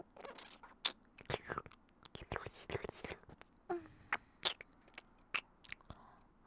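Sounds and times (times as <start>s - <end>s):
ASMR kissing sounds in the right ear: 0.2s - 2.2s, 3.2s - 5.9s.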